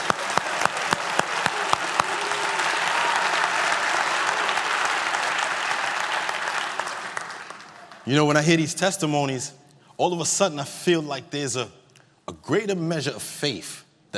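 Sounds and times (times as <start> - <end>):
audience clapping: 0.0 - 8.5
speech: 8.1 - 14.1.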